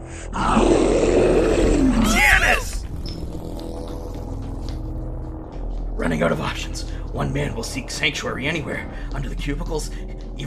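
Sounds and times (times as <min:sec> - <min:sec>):
speech: 0:00.2 - 0:00.8, 0:06.1 - 0:10.4
monster roaring: 0:00.2 - 0:04.9.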